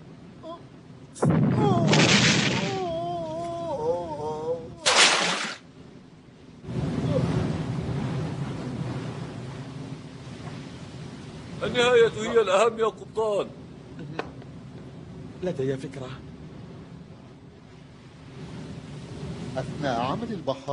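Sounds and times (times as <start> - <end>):
long sustained rushing rumble: 0.0 - 20.7
speech: 1.2 - 1.5, 11.7 - 13.6, 15.4 - 16.3, 19.6 - 20.7
ship's cannon firing on the captain's order: 1.2 - 2.9.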